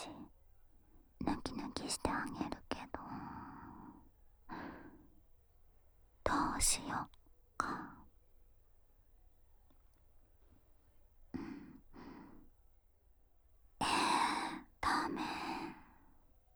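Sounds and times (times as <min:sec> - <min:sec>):
voiceless whispering on stairs: 0:00.0 - 0:00.3, 0:01.2 - 0:05.0, 0:06.2 - 0:08.1, 0:13.8 - 0:16.0.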